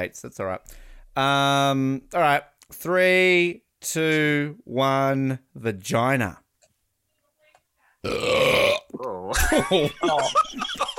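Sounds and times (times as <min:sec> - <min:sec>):
speech: 0:00.0 - 0:06.4, 0:08.0 - 0:08.4, 0:09.0 - 0:10.9
loud roaring burp: 0:08.0 - 0:09.0
laughter: 0:09.3 - 0:10.9.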